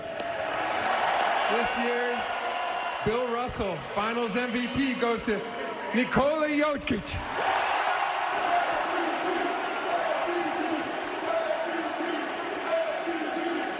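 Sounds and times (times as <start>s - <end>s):
large crowd cheering for trophy presentation: 0.0s - 13.7s
speech: 1.5s - 2.4s, 3.0s - 7.5s
people shouting: 7.3s - 13.7s.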